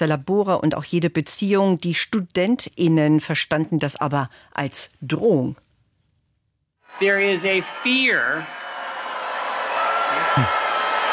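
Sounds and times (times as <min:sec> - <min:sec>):
speech: 0:00.0 - 0:05.6, 0:07.0 - 0:08.6, 0:10.1 - 0:10.6
audience booing a speaker: 0:06.9 - 0:11.1.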